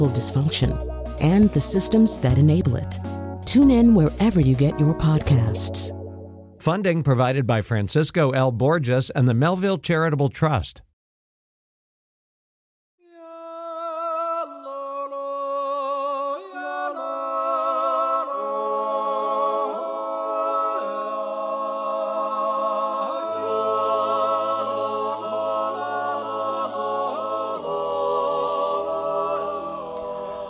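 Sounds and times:
speech: 0:00.0 - 0:06.0, 0:06.6 - 0:10.9
polyphonic Swiss yodeling, several voices in harmony: 0:13.0 - 0:30.4.

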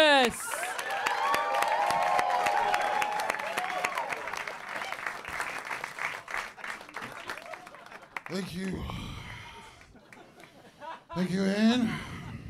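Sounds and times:
speech: 0:00.2 - 0:00.5, 0:11.2 - 0:12.0
audience applause: 0:00.2 - 0:08.8
laughter: 0:06.5 - 0:08.8, 0:09.5 - 0:12.3.

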